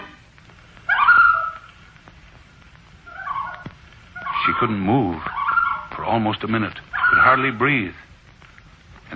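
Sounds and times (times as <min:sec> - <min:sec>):
loon calling: 0:00.9 - 0:01.7, 0:03.1 - 0:06.1, 0:06.9 - 0:07.6
speech: 0:04.6 - 0:05.3, 0:06.1 - 0:08.1.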